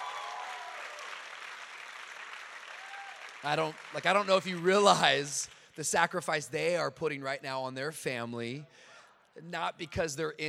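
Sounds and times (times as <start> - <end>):
church congregation applauding its lead pastors: 0.0 - 5.8
speech: 3.4 - 10.4.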